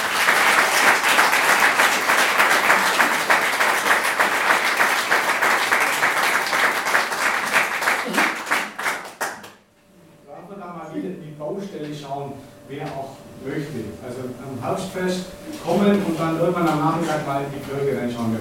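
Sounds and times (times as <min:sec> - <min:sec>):
audience applause: 0:00.0 - 0:09.6
speech: 0:14.7 - 0:18.4.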